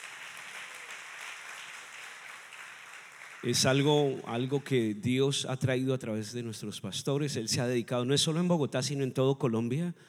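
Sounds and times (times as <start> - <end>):
audience applause: 0.0 - 4.8
speech: 3.4 - 10.0.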